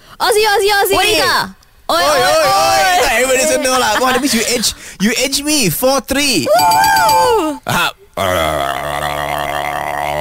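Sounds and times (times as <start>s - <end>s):
speech: 0.1s - 9.2s
voice imitating a didgeridoo drone: 7.7s - 10.2s.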